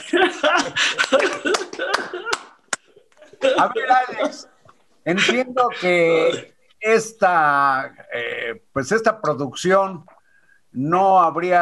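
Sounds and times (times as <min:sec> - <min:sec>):
laughter: 0:00.0 - 0:04.5
audience clapping: 0:01.0 - 0:02.8
speech: 0:03.6 - 0:10.1, 0:10.8 - 0:11.6.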